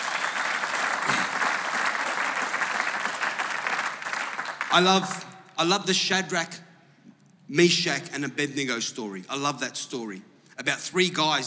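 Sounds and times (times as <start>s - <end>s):
audience applause: 0.0s - 5.1s
speech: 4.7s - 6.6s, 7.5s - 11.4s.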